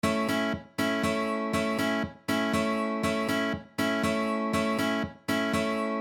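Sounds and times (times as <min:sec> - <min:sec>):
rhythm guitar: 0:00.0 - 0:06.0.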